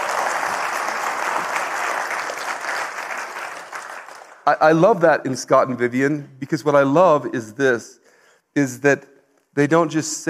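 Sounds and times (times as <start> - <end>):
audience applause: 0.0 - 4.4
speech: 4.5 - 10.2.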